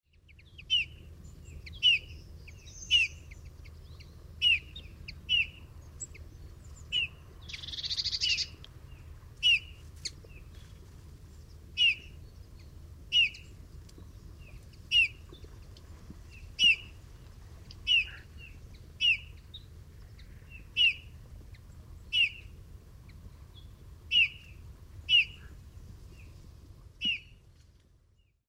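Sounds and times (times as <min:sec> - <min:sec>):
Pyrrhula pyrrhula calling: 0:00.4 - 0:06.2, 0:06.8 - 0:08.6, 0:09.4 - 0:10.2, 0:11.8 - 0:12.2, 0:13.1 - 0:13.6, 0:14.7 - 0:15.3, 0:16.3 - 0:17.0, 0:17.7 - 0:19.6, 0:20.2 - 0:22.6, 0:24.1 - 0:25.6, 0:27.0 - 0:27.4.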